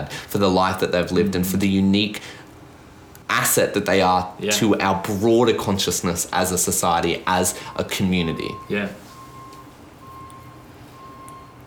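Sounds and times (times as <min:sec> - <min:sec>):
speech: 0:00.0 - 0:02.4, 0:03.3 - 0:09.0
construction noise rumble: 0:00.0 - 0:09.9
vehicle reversing alarm beeping: 0:07.6 - 0:11.6.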